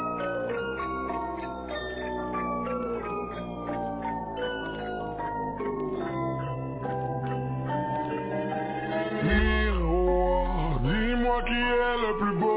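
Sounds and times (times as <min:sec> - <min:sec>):
scary music: 0:00.2 - 0:12.4.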